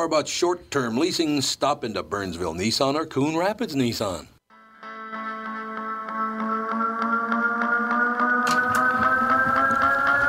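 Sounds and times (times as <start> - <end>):
speech: 0.0 - 4.4
twangy guitar music: 4.7 - 10.2.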